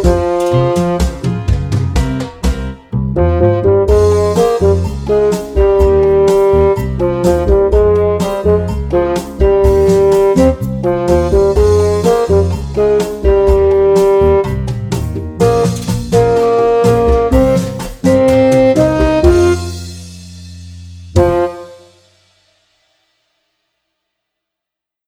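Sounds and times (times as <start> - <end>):
high horn: 0.0 - 1.8, 3.1 - 14.8, 15.4 - 20.1, 21.1 - 22.2.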